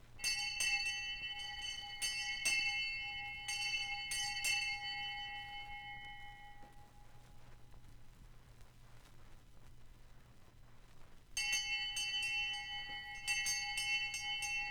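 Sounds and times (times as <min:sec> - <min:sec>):
hand bell ringing: 0:00.2 - 0:07.4, 0:11.4 - 0:14.6.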